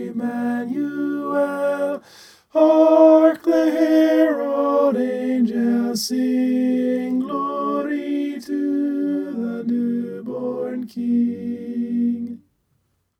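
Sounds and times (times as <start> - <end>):
tenor singing a carol: 0.0 - 12.4.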